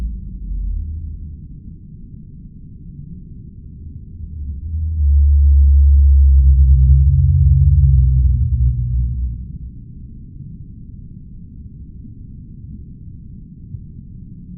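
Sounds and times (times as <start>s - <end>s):
blue whale low frequency-modulated moaning calls: 4.2s - 10.0s.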